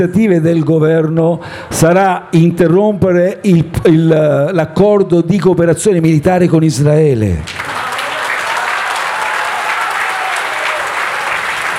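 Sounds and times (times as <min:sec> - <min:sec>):
speech: 0:00.0 - 0:07.7
audience applause: 0:07.5 - 0:11.7.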